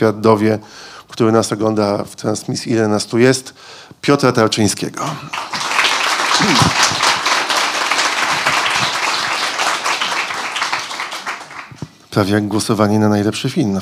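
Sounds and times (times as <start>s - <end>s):
speech: 0.0s - 5.6s, 6.4s - 7.0s, 12.2s - 13.8s
large crowd applauding a guest: 5.3s - 12.0s.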